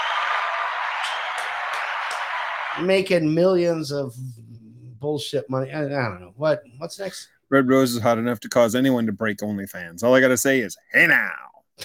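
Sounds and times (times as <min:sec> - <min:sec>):
applause: 0:00.0 - 0:03.1
speech: 0:02.8 - 0:04.4, 0:05.0 - 0:11.8.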